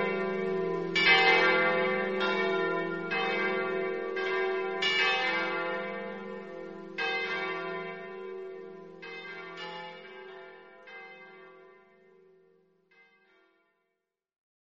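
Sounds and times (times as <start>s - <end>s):
bells ringing: 0.0s - 11.7s.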